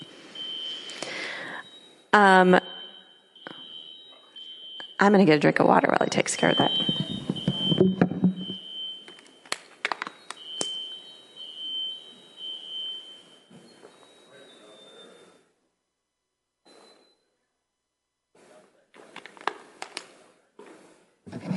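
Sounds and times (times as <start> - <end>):
fire alarm system beeping: 0.0 - 15.5, 16.6 - 17.4
speech: 2.1 - 2.7, 5.0 - 7.0
clattering and handling noises: 6.7 - 8.6, 19.0 - 21.5
rustling and knocks: 6.7 - 8.6.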